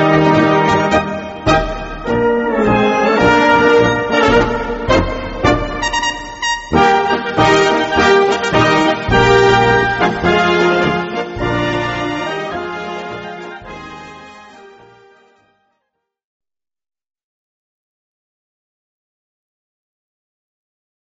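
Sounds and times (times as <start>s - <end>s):
brass band music: 0.0s - 15.5s.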